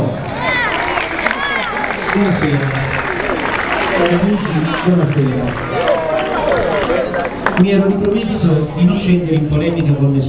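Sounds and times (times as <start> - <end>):
audience applause: 0.0 - 8.4
dense murmur of cheering and overlapping voices: 0.0 - 10.2
speech: 2.2 - 2.9, 4.0 - 5.9, 7.6 - 10.2.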